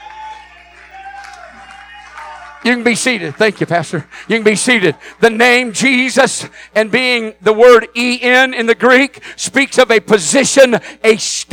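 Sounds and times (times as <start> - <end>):
audience clapping hands: 0.0 - 6.1
speech: 2.6 - 11.5.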